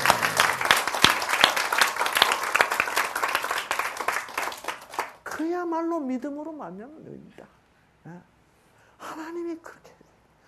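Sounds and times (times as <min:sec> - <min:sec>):
audience applause: 0:00.0 - 0:05.2
speech: 0:05.7 - 0:08.3, 0:09.2 - 0:09.9.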